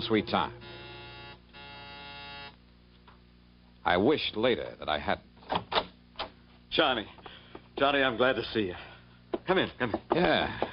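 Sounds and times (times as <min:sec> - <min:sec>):
speech: 0:00.0 - 0:00.7, 0:03.8 - 0:05.7, 0:06.8 - 0:07.2, 0:07.8 - 0:08.9, 0:09.5 - 0:10.6
doorbell buzzer ringing: 0:00.0 - 0:02.6.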